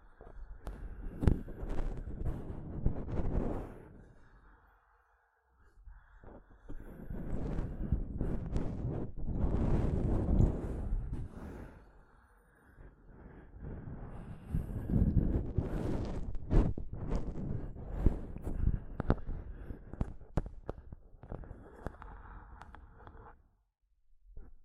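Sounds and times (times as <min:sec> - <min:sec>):
scratching on a microphone: 0:00.6 - 0:04.0, 0:06.7 - 0:11.6, 0:13.8 - 0:21.9.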